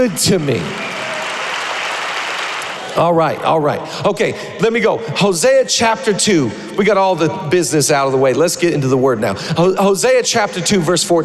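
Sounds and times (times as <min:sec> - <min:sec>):
speech: 0:00.0 - 0:01.0, 0:02.9 - 0:11.2
crowd clapping: 0:00.0 - 0:03.1.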